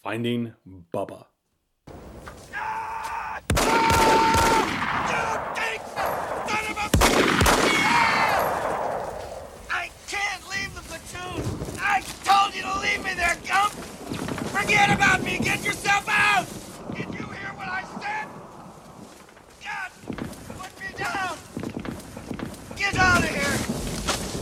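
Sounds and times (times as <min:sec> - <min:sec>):
speech: 0:00.0 - 0:01.3
man shouting urgently in a battle scene: 0:02.5 - 0:07.0, 0:07.6 - 0:08.6, 0:09.7 - 0:13.8, 0:14.6 - 0:18.3, 0:19.6 - 0:20.0, 0:20.6 - 0:21.4, 0:22.8 - 0:23.6
loud bangs like explosions or heavy gunshots: 0:03.4 - 0:24.3.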